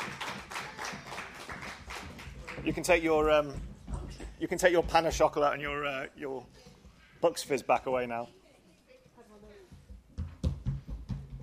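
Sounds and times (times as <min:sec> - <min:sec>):
audience applause: 0:00.0 - 0:03.3
speech: 0:02.6 - 0:03.7, 0:04.4 - 0:06.6, 0:07.2 - 0:08.4.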